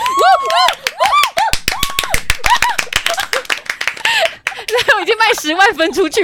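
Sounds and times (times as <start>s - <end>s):
high sliding whoops and cheering voices: 0.0s - 3.2s
people clapping imitating canned studio applause: 0.0s - 5.8s
speech: 5.4s - 6.2s.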